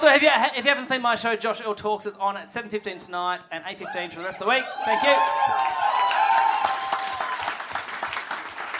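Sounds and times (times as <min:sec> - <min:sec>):
speech: 0:00.0 - 0:06.0
clapping: 0:04.9 - 0:08.7.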